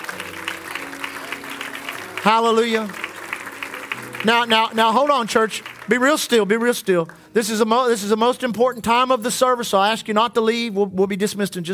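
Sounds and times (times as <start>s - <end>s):
audience clapping: 0.0s - 7.4s
speech: 2.2s - 3.0s, 4.2s - 11.7s.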